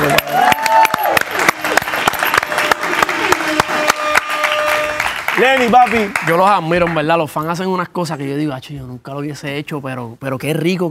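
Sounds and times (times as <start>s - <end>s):
crowd voices and cheers: 0.0s - 5.6s
audience applause: 0.0s - 7.1s
speech: 5.4s - 10.8s.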